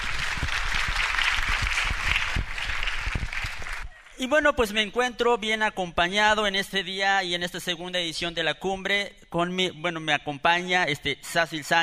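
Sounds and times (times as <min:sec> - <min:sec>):
crowd applauding: 0:00.0 - 0:04.2
speech: 0:04.2 - 0:11.8.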